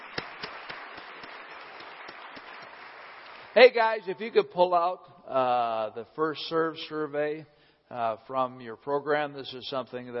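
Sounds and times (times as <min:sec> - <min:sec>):
audience applauding: 0:00.0 - 0:03.8
speech: 0:03.6 - 0:10.1.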